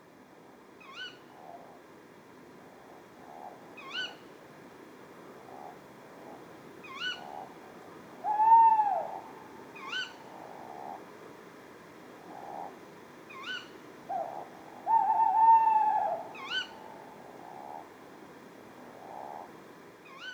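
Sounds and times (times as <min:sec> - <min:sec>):
tawny owl Strix aluco kee-wick calls: 0:08.2 - 0:10.2, 0:13.3 - 0:17.8
tawny owl Strix aluco quavering hoots: 0:08.2 - 0:10.2, 0:13.4 - 0:17.1.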